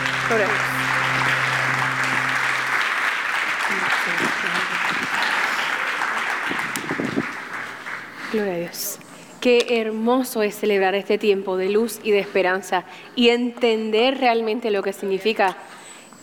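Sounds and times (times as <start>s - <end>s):
audience applause: 0.0s - 8.2s
speech: 0.3s - 0.9s, 8.4s - 15.7s.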